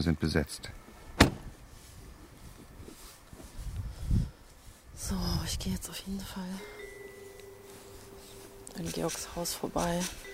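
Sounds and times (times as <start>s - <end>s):
speech: 0.0s - 0.8s, 5.1s - 6.8s, 8.8s - 10.3s
car door thunk at night: 1.1s - 1.6s.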